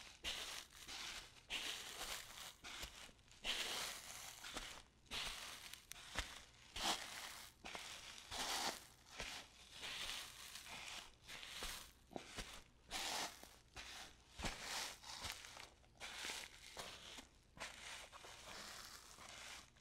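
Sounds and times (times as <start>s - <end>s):
barefoot footsteps on sand: 0.0s - 19.7s.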